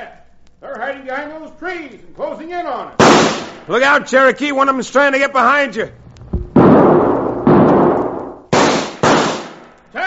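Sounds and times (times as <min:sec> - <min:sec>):
speech: 0:00.7 - 0:06.0
carbine gunshots in a radio drama: 0:03.0 - 0:03.6, 0:06.6 - 0:09.7.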